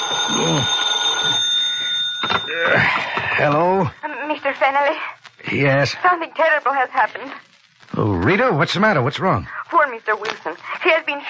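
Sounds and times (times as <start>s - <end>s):
telephone ringing: 0.0s - 3.8s
speech: 2.6s - 4.0s, 4.6s - 11.2s.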